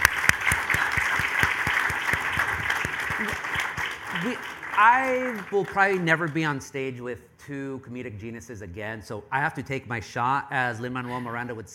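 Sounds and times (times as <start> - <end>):
audience applause: 0.0 - 6.4
speech: 4.2 - 11.7.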